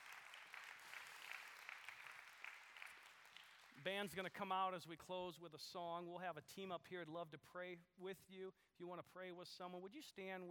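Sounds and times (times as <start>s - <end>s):
audience applause: 0.0s - 4.0s
speech: 3.8s - 10.4s.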